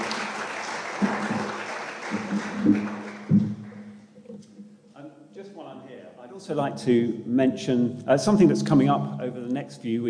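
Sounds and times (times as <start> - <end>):
audience applause: 0.0 - 4.0
speech: 6.4 - 10.0.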